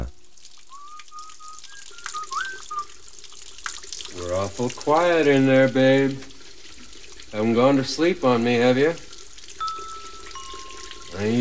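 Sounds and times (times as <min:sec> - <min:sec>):
water running from a tap: 0:00.0 - 0:11.3
thin whistling tone: 0:00.6 - 0:03.2, 0:09.6 - 0:11.3
speech: 0:04.4 - 0:06.3, 0:07.3 - 0:09.1, 0:11.2 - 0:11.3.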